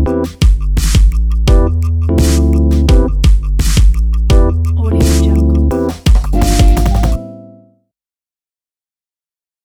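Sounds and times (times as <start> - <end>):
broken hip-hop jazz music: 0.0 - 7.2.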